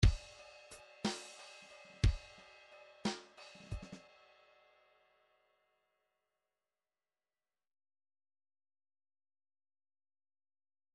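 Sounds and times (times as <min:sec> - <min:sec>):
MIDI file groove in 3/4 time: 0:00.0 - 0:04.0.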